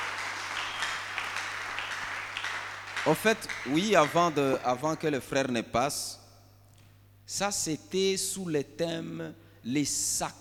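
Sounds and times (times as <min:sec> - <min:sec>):
congregation applauding during a church service: 0:00.0 - 0:05.2
speech: 0:03.0 - 0:06.2, 0:07.3 - 0:10.4.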